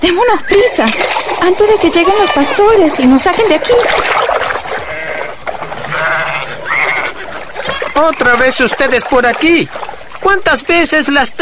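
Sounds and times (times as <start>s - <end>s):
speech: 0.0s - 4.5s, 8.0s - 11.4s
sheep bleating: 4.7s - 7.8s.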